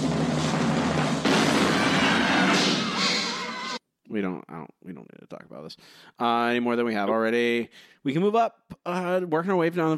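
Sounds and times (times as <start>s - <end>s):
cannon firing: 0.2s - 3.6s
speech: 4.2s - 9.9s.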